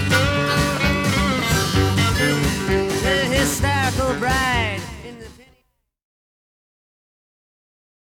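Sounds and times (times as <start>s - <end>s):
harmonica overdub: 0.0s - 5.5s.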